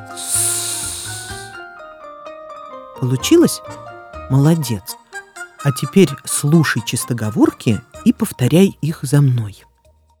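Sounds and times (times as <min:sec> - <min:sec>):
voice hissing s sound imitating whistling wind: 0:00.0 - 0:01.6
speech: 0:03.0 - 0:05.0, 0:05.6 - 0:09.7.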